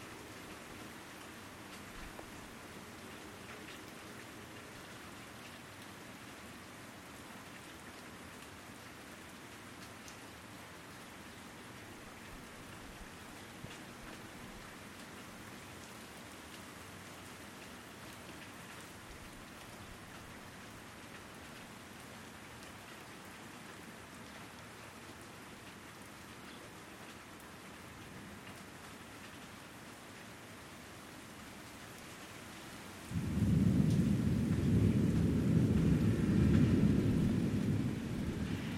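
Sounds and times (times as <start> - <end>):
sudden Fort Wayne thunderstorm: 33.1 - 38.7.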